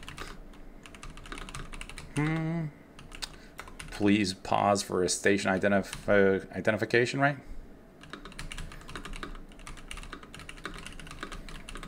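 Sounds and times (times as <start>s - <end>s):
rapid typing on a loud mechanical keyboard: 0.0s - 2.4s, 3.0s - 4.0s, 8.0s - 11.8s
speech: 2.2s - 2.8s, 4.0s - 7.5s.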